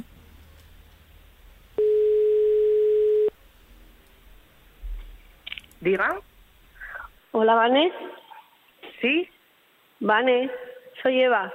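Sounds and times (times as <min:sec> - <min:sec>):
low hiss: 0:00.0 - 0:11.5
telephone dial tone while placing a call: 0:01.8 - 0:03.3
speech: 0:05.8 - 0:06.3, 0:07.4 - 0:08.2, 0:09.0 - 0:09.4, 0:10.0 - 0:11.5.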